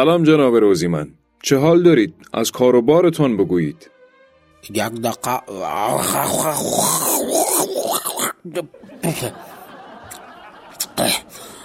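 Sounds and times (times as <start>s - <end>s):
speech: 0.0s - 4.0s, 4.6s - 7.1s, 8.4s - 9.5s, 11.0s - 11.3s
person spitting out naswar chewing tobacco: 5.8s - 8.4s, 10.8s - 11.4s
laughter: 8.5s - 11.6s.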